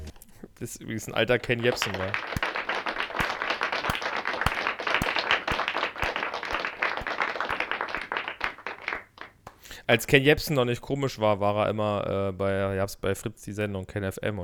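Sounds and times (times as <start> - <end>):
speech: 0.6 - 2.5, 9.9 - 14.4
applause sound effect: 1.3 - 9.6.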